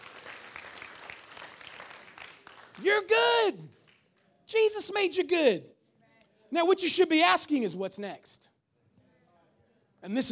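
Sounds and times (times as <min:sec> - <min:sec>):
audience clapping: 0:00.0 - 0:04.2
speech: 0:02.8 - 0:03.8, 0:04.5 - 0:05.7, 0:06.5 - 0:08.5, 0:10.0 - 0:10.3.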